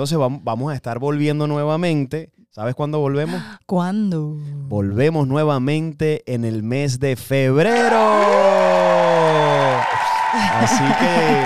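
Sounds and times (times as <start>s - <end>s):
speech: 0.0s - 8.9s, 10.3s - 11.4s
applause: 7.6s - 11.4s
cheering: 7.6s - 11.4s
laughter: 10.0s - 11.4s.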